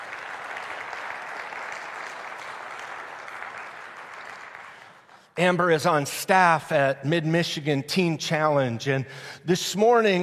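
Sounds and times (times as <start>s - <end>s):
audience applause: 0.0s - 5.2s
speech: 5.4s - 10.2s.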